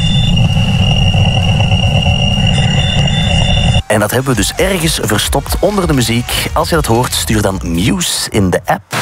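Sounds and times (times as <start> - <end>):
high whistling tones of the Wow Signal radio recording: 0.0 - 7.2
rough low rumble of the Wow Signal radio recording: 0.0 - 8.0
speech: 3.9 - 9.0.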